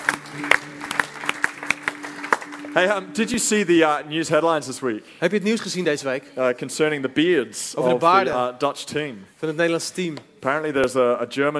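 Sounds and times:
audience applause for the band: 0.0 - 3.0
speech: 2.8 - 11.5.

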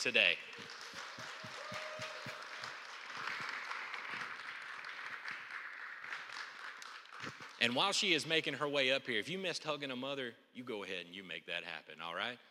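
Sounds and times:
speech: 0.0 - 0.8, 7.6 - 12.4
audience applause: 0.0 - 7.8.

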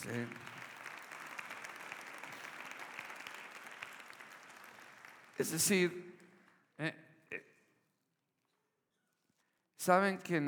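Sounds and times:
speech: 0.0 - 0.5, 5.4 - 6.1, 6.8 - 7.5, 9.8 - 10.4
audience applause for the actors: 0.0 - 6.0.

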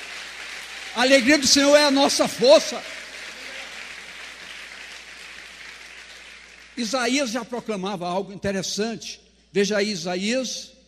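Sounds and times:
audience applause: 0.0 - 6.9
speech: 1.0 - 3.0, 6.8 - 10.8.

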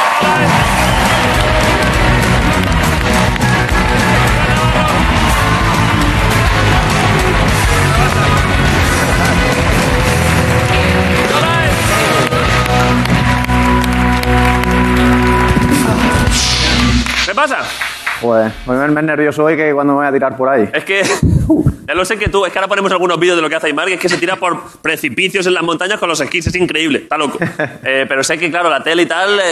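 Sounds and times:
studio audience applause: 0.0 - 18.6
speech: 18.3 - 29.5.

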